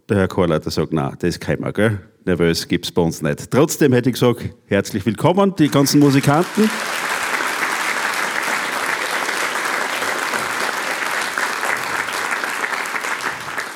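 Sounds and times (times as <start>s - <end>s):
speech: 0.1s - 7.0s
audience applause: 5.6s - 13.7s.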